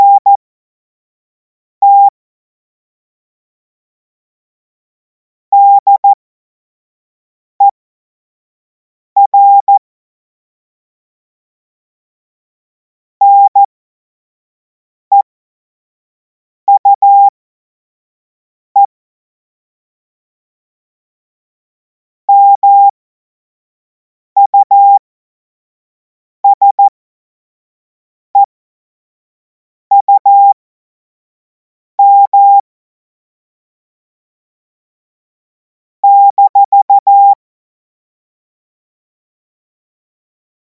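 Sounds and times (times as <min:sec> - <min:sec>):
CW Morse code beeps: 0:00.0 - 0:00.4, 0:01.8 - 0:02.1, 0:05.6 - 0:06.2, 0:09.2 - 0:09.8, 0:13.2 - 0:13.7, 0:16.7 - 0:17.3, 0:22.3 - 0:22.9, 0:24.4 - 0:25.0, 0:26.4 - 0:26.9, 0:29.9 - 0:30.6, 0:32.0 - 0:32.6, 0:36.0 - 0:37.4.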